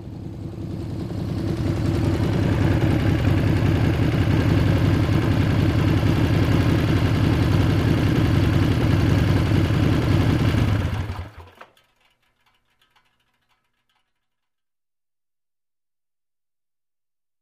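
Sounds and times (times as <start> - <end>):
motorcycle approaching and turning off: 0.0 - 11.4.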